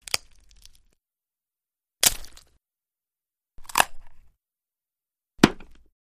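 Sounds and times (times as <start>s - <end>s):
bone breaking: 0.0s - 1.0s, 2.0s - 2.6s, 3.6s - 4.2s.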